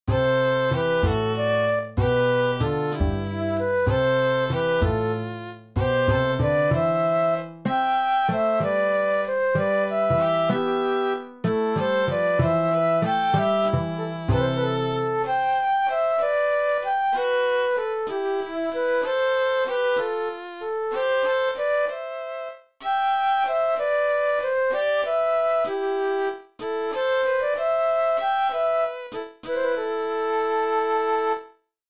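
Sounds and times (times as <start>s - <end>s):
waltz music: 0.1s - 31.5s.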